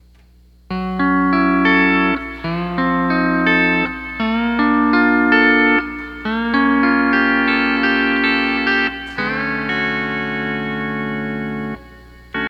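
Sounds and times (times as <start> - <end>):
nightlife music: 0.7 - 12.4.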